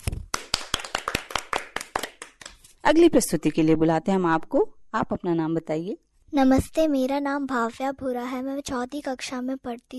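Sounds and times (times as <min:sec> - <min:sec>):
children applauding: 0:00.3 - 0:02.6
speech: 0:02.9 - 0:09.9.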